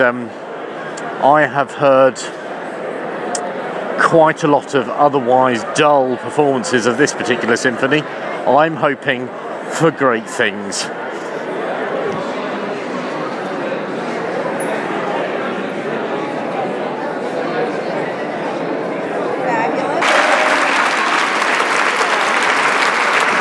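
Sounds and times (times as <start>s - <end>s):
speech: 0.0s - 0.4s, 1.2s - 2.4s, 4.0s - 11.2s
murmured crowd noise: 0.0s - 23.3s
concert hall audience applause standing ovation: 20.0s - 23.3s.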